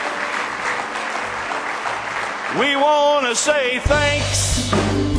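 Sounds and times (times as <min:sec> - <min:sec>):
audience clapping hands: 0:00.0 - 0:03.7
speech: 0:02.5 - 0:05.0.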